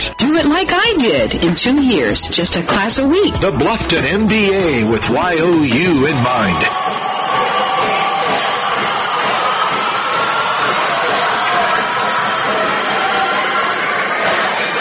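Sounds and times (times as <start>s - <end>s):
speech: 0.4s - 7.4s
noisy high school gym crowd at Jackson Center High School: 5.4s - 14.7s.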